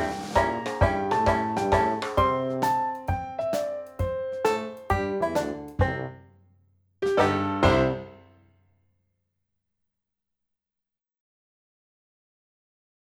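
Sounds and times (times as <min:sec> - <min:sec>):
banjo Dixieland music: 0:00.0 - 0:06.2, 0:07.0 - 0:08.3.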